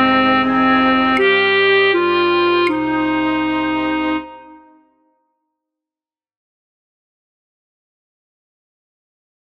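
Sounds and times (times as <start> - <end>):
alto flute in a flute orchestra: 0.0 - 5.2.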